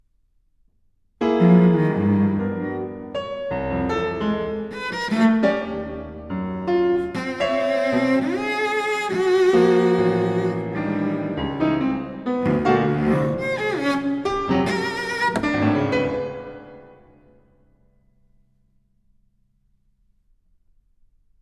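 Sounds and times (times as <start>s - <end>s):
violoncello and piano playing very animated: 1.2s - 17.2s.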